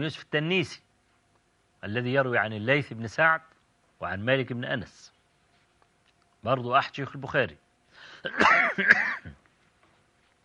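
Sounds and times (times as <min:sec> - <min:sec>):
speech: 0:00.0 - 0:00.9, 0:01.8 - 0:05.1, 0:06.4 - 0:07.6, 0:08.2 - 0:09.2
person coughing and clearing throat, blamed on dusty Cairo air: 0:08.2 - 0:09.4.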